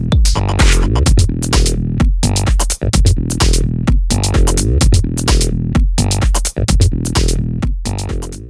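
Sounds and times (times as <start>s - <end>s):
tech house music: 0.0s - 8.4s.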